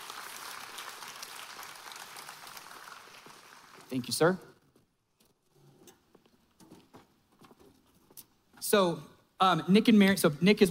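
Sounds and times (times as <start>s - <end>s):
faint audience applause at a church service: 0.0s - 4.0s
speech: 3.9s - 4.5s, 8.7s - 10.6s.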